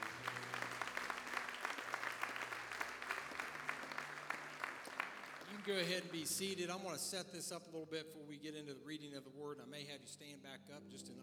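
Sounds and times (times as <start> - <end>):
audience clapping hands: 0.0 - 6.5
speech: 5.6 - 11.2.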